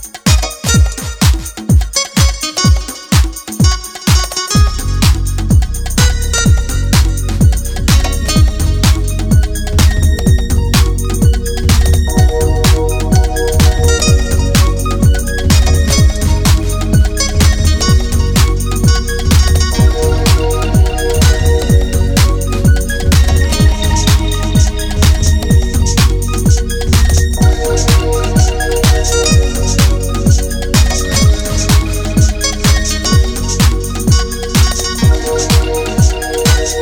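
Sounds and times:
Ibiza guitar music: 0.3s - 36.8s.

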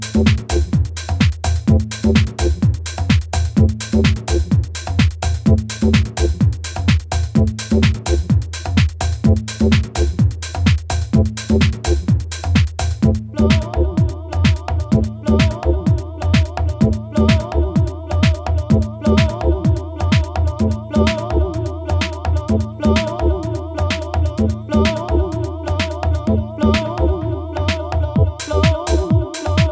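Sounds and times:
bass rhythms: 0.0s - 29.7s.

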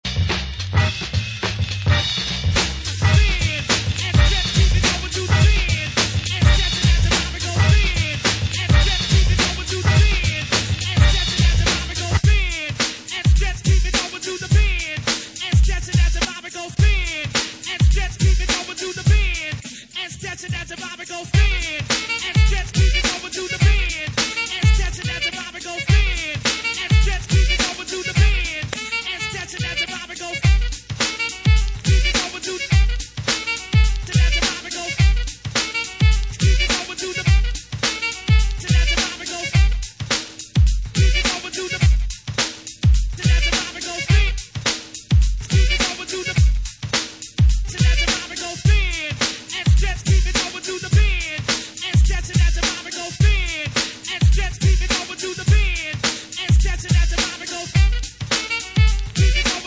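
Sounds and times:
instrumental party groove music: 0.0s - 59.6s.

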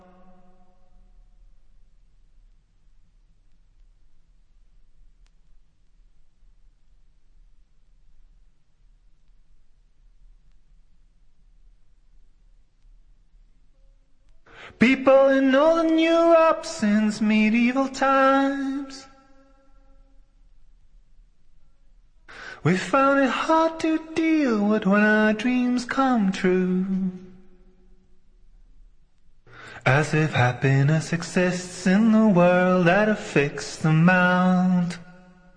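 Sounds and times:
a cappella singing: 14.8s - 19.1s, 22.6s - 27.4s, 29.8s - 35.2s.

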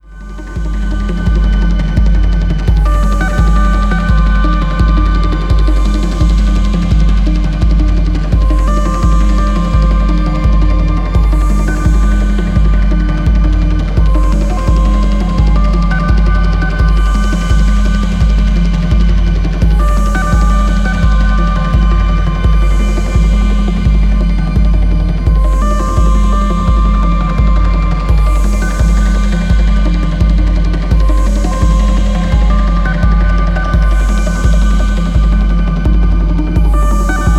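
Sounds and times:
synthetic flute: 0.0s - 37.3s.

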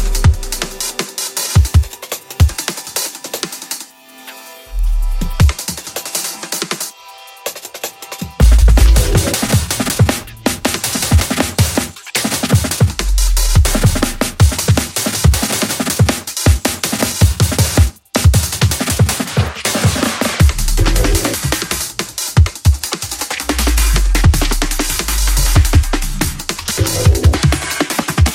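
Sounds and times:
drumming: 0.0s - 3.9s, 5.2s - 6.9s, 7.5s - 28.3s.

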